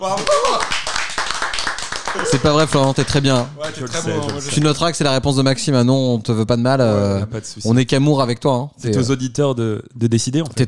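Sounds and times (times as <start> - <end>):
speech: 0.0 - 0.8, 2.2 - 10.6
applause: 0.0 - 5.0.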